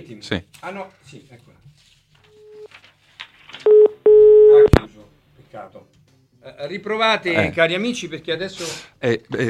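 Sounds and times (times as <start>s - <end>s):
speech: 0.0s - 2.0s, 5.0s - 9.4s
telephone tones on the line as a call comes in: 3.7s - 4.7s.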